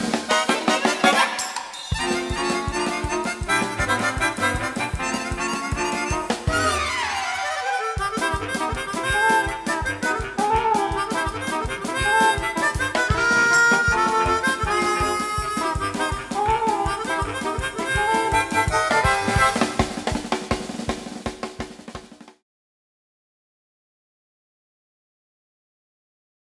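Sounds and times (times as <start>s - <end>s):
harmonica playing polka: 0.0s - 20.6s.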